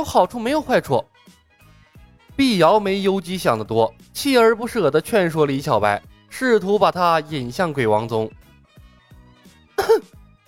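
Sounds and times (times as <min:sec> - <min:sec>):
speech: 0:00.0 - 0:01.4, 0:02.4 - 0:08.4, 0:09.8 - 0:10.2
single short cough: 0:09.8 - 0:10.2.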